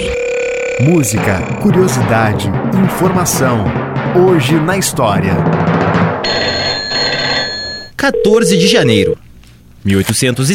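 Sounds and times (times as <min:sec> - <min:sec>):
telephone bell ringing: 0:00.0 - 0:01.1, 0:06.2 - 0:09.2
speech: 0:00.8 - 0:07.3, 0:08.0 - 0:09.2, 0:09.8 - 0:10.5.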